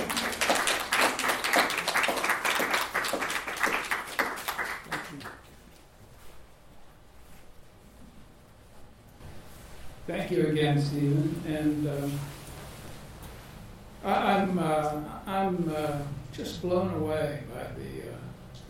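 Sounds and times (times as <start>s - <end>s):
audience applause: 0.0s - 5.5s
speech: 10.1s - 12.4s, 14.0s - 18.0s.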